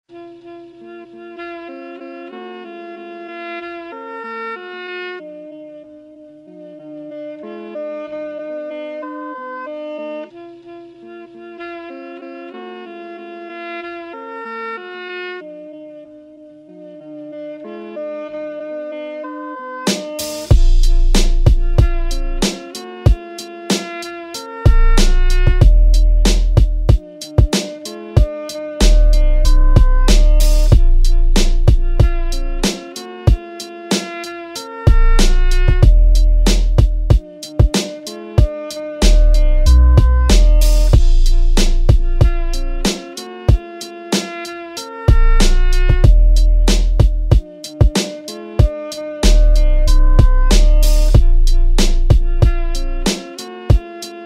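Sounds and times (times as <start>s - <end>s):
90s boom bap freestyle beat: 19.9s - 54.2s.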